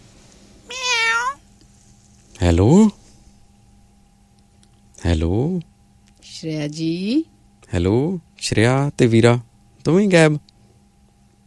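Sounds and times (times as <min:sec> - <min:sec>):
cat meowing: 0:00.7 - 0:01.4
speech: 0:02.4 - 0:03.0, 0:05.1 - 0:05.7, 0:06.4 - 0:10.5.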